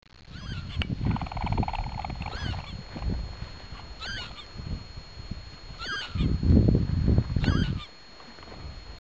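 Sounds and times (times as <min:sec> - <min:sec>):
lapwing calling: 0:00.2 - 0:04.7, 0:05.7 - 0:06.5, 0:07.4 - 0:08.1.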